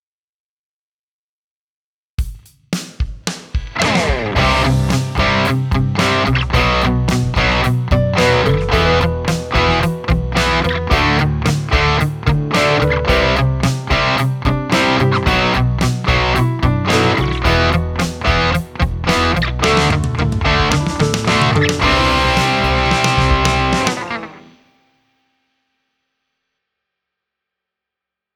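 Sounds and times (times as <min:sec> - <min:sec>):
BOSS GX-1 guitar effects processor without low cut: 0:03.7 - 0:24.7.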